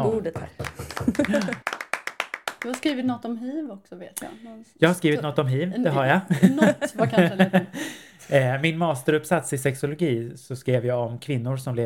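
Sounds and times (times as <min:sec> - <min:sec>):
speech: 0:00.0 - 0:01.7, 0:02.6 - 0:11.8
hands clapping applause: 0:00.0 - 0:03.1
laughter: 0:00.7 - 0:01.6, 0:05.9 - 0:08.6.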